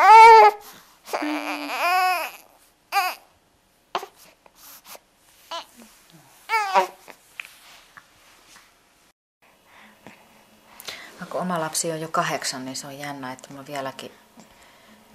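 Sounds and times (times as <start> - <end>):
baby whimpering: 0.0 - 3.3, 4.0 - 4.9, 5.5 - 5.9, 6.5 - 7.2
distressed baby crying: 0.0 - 3.3, 5.5 - 5.9, 6.5 - 7.2
speech: 0.5 - 1.9, 11.7 - 14.2.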